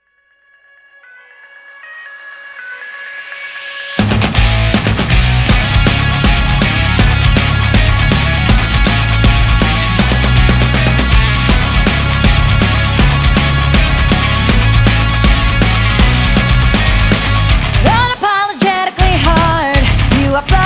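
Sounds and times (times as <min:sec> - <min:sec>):
rock music: 0:01.0 - 0:20.6.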